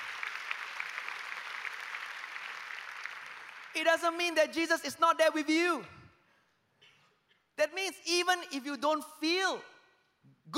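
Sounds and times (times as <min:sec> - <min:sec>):
crowd applauding: 0:00.0 - 0:03.8
speech: 0:03.8 - 0:06.0, 0:07.6 - 0:09.7.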